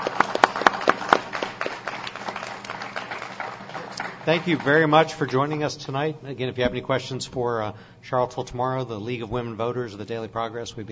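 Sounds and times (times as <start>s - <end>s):
audience applause: 0.0s - 5.8s
speech: 4.2s - 10.9s.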